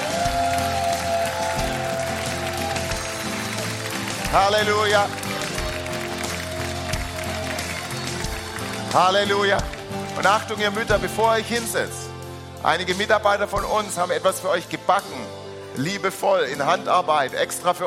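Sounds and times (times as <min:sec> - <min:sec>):
audience applause: 0:00.0 - 0:11.2
speech: 0:04.4 - 0:05.4, 0:08.9 - 0:12.0, 0:12.6 - 0:17.8.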